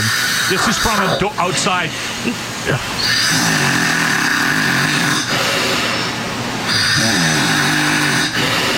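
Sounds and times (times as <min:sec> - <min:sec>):
man snoring loudly: 0:00.0 - 0:01.2, 0:03.0 - 0:05.5, 0:06.7 - 0:08.7
speech: 0:00.5 - 0:03.8.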